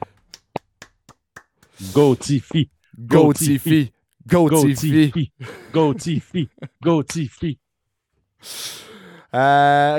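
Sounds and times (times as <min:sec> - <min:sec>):
hand clapping: 0:00.0 - 0:01.8
speech: 0:01.8 - 0:07.6, 0:08.4 - 0:09.9.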